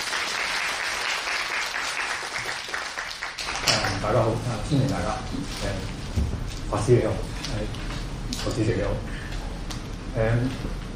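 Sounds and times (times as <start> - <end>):
audience applause welcoming the speaker at an evening Buddhist studies lecture: 0.0 - 4.3
speech: 4.0 - 6.0, 6.7 - 9.1, 10.1 - 10.8.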